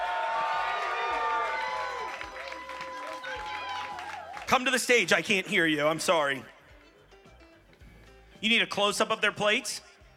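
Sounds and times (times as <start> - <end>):
crowd applause and cheering: 0.0 - 5.4
speech: 4.5 - 6.5, 8.4 - 9.9.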